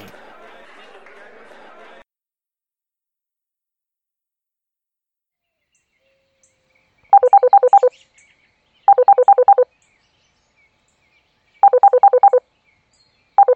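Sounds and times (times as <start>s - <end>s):
laughter: 0.0s - 2.0s
touch-tone telephone dialing beeps: 7.2s - 7.9s, 8.9s - 9.6s, 11.6s - 12.4s, 13.4s - 13.5s.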